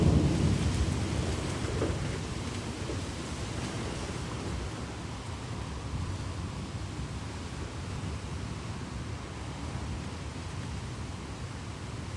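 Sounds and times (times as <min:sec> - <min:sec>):
thunder: 0:00.0 - 0:04.9
heavy wind: 0:00.0 - 0:12.1
rain: 0:00.0 - 0:12.1.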